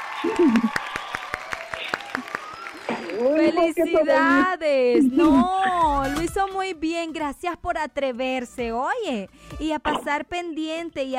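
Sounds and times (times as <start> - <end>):
audience applause: 0.0 - 4.3
speech: 0.2 - 0.9, 3.2 - 11.1.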